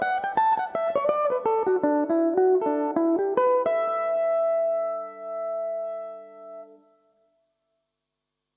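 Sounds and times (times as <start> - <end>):
Irish mandolin playing a reel in E dorian: 0.0 - 5.9.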